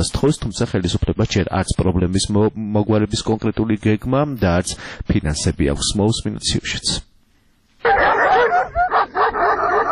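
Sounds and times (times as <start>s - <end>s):
speech: 0.0s - 7.1s
stray dogs barking and yelping in Lagodekhi, Georgia: 7.8s - 9.9s.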